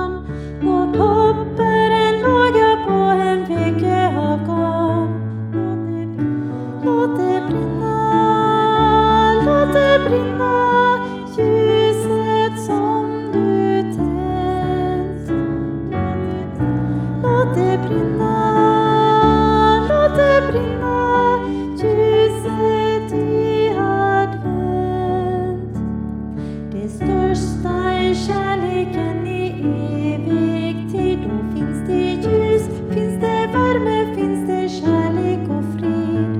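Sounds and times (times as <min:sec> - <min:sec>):
treble part of a hymn: 0:00.0 - 0:36.3.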